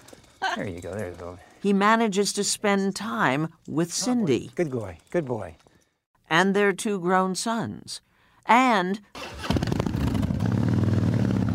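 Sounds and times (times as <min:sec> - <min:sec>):
speech: 0:00.5 - 0:05.6, 0:06.3 - 0:09.6
Harley-Davidson motorcycle engine rumbling while ridden: 0:09.2 - 0:11.5.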